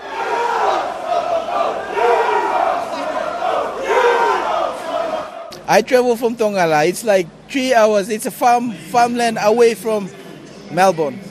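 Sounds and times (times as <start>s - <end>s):
soccer fans chanting in the rain: 0.0s - 5.5s
speech: 5.7s - 11.2s.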